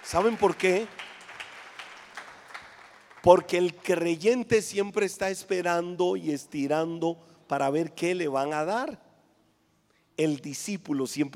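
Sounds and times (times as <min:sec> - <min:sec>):
audience applause: 0:00.0 - 0:03.7
speech: 0:00.1 - 0:01.0, 0:03.2 - 0:09.0, 0:10.2 - 0:11.3.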